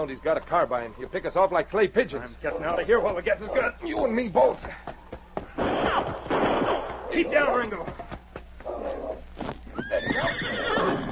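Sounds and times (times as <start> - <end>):
speech: 0.0 - 4.9, 7.1 - 8.0
horse hooves clip-clopping: 0.0 - 11.1
horse whinnying: 8.7 - 11.1.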